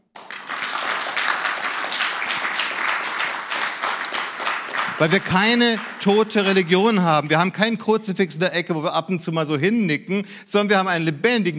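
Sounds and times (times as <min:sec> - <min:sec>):
crowd applause: 0:00.1 - 0:07.0
speech: 0:05.0 - 0:11.5.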